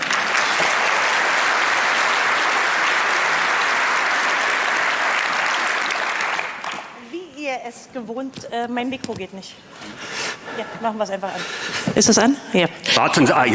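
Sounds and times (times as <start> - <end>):
audience applause: 0.0 - 7.0
speech: 7.8 - 13.5.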